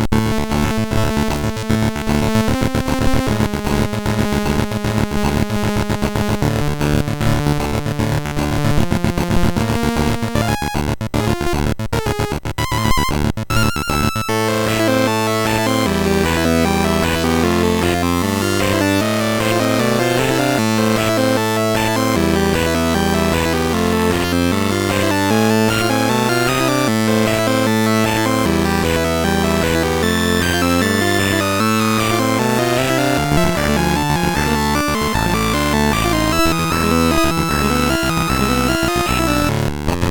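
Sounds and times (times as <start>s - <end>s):
MOS6581R3 SID chip game music: 0.1s - 40.0s.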